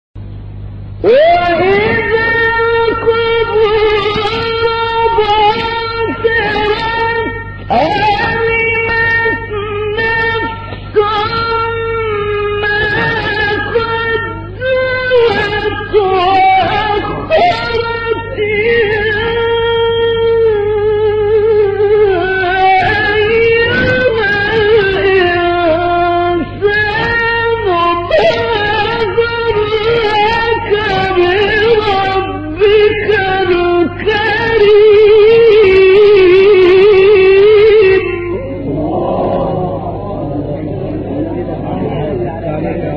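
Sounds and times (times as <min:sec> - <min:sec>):
beautiful old recitation of a Quran surah: 0:01.0 - 0:42.9.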